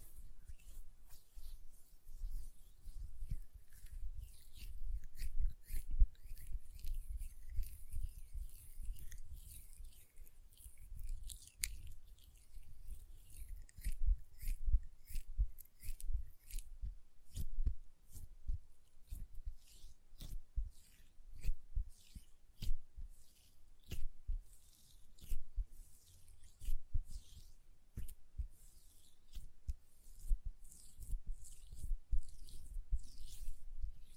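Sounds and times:
hands rubbing lotion: 0.0s - 34.1s.

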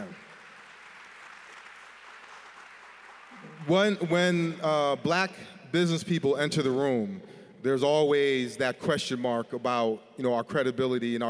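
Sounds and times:
audience clapping: 0.0s - 5.0s
speech: 3.7s - 11.2s.

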